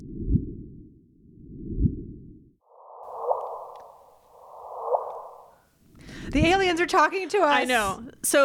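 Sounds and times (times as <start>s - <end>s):
gravitational wave chirp rendered as sound, low rumbling swells: 0.0s - 5.6s
gravitational wave chirp rendered as sound, higher-pitched whooshes: 2.8s - 5.6s
speech: 6.3s - 8.4s.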